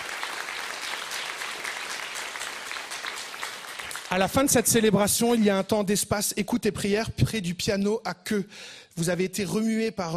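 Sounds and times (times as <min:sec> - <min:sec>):
audience applauding: 0:00.0 - 0:04.8
speech: 0:04.1 - 0:10.1.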